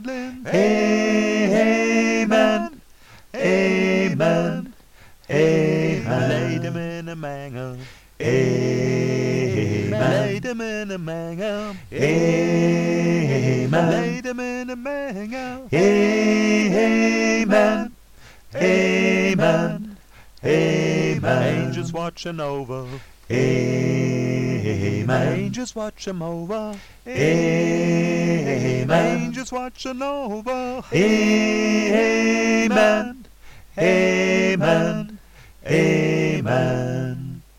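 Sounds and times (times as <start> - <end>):
gospel choir singing amen: 0.0 - 37.5.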